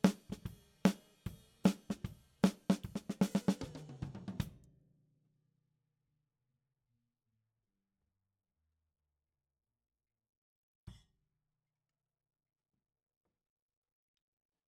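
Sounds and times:
snare drum top in ragtime style: 0:00.0 - 0:04.6.

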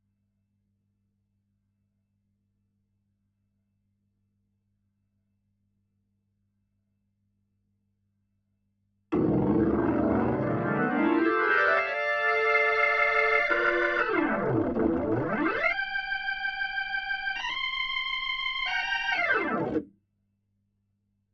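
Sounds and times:
Hammond organ: 0:09.2 - 0:19.8.

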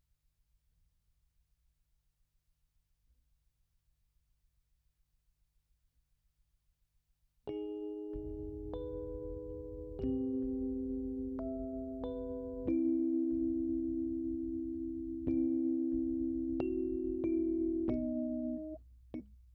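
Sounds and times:
Rhodes electric piano: 0:07.5 - 0:19.3.

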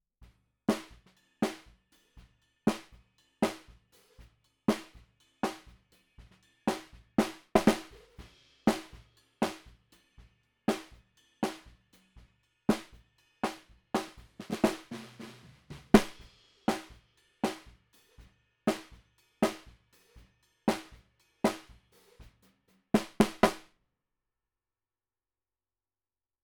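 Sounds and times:
bottom snare drum: 0:00.7 - 0:01.8, 0:02.7 - 0:09.8, 0:10.7 - 0:11.8, 0:12.7 - 0:22.4, 0:23.0 - 0:23.7.

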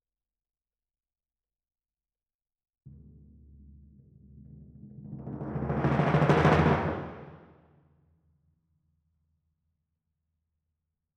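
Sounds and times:
timpani: 0:02.9 - 0:07.6.

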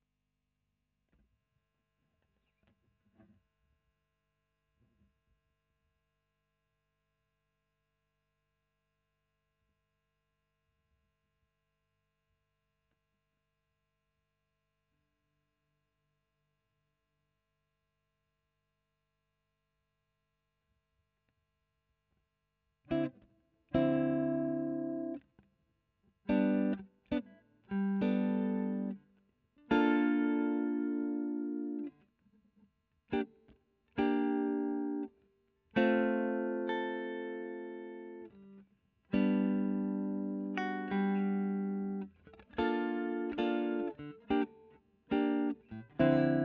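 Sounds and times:
electric guitar: 0:22.9 - 0:25.2, 0:26.3 - 0:29.0, 0:29.7 - 0:32.0, 0:33.1 - 0:46.4.

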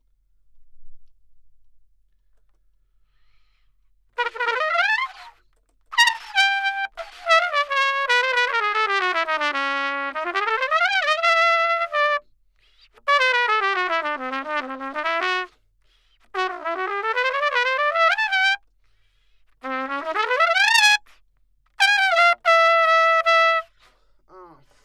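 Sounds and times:
trumpet: 0:04.2 - 0:12.2, 0:12.9 - 0:15.6, 0:16.2 - 0:18.6, 0:19.6 - 0:21.2, 0:21.8 - 0:23.9.

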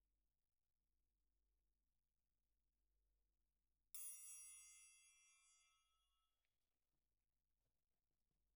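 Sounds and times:
percussion: 0:04.0 - 0:06.5.

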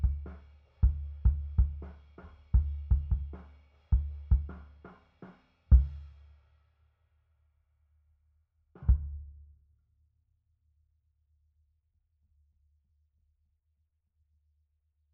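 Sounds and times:
sub kick drum: 0:00.0 - 0:01.9, 0:02.5 - 0:03.4.

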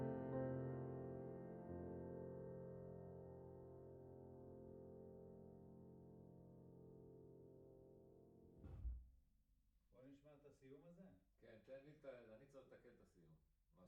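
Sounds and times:
piano note A: 0:00.0 - 0:06.0.

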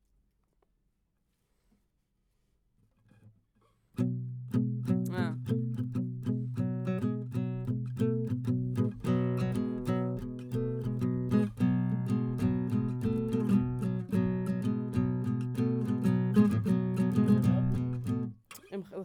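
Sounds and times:
guitar: 0:04.0 - 0:19.0.

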